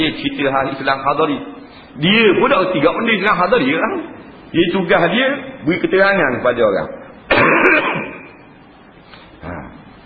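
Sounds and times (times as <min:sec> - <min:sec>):
speech: 0:00.1 - 0:08.1
coughing and throat clearing: 0:07.3 - 0:08.4.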